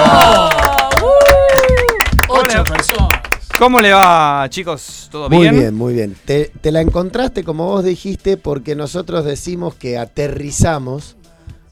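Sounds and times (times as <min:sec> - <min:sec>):
voices cheering and whooping: 0:00.0 - 0:02.2
audience clapping: 0:00.0 - 0:04.3
speech: 0:03.6 - 0:11.2.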